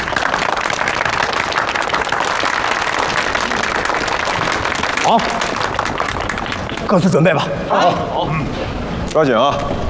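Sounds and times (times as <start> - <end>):
audience applause: 0.0 - 7.5
speech: 5.1 - 5.4, 6.9 - 9.7.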